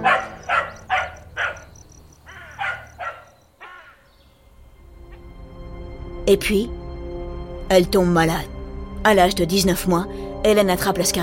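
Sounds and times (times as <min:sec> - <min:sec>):
dog barking: 0:00.0 - 0:03.8
insects chirping: 0:00.0 - 0:06.2
speech: 0:06.3 - 0:06.8, 0:07.7 - 0:11.2.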